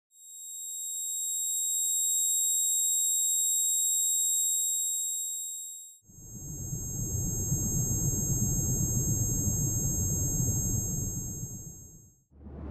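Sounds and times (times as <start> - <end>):
tinnitus emulation ringing tone: 0.2 - 12.2
tinnitus emulation hissing tone: 5.7 - 12.0.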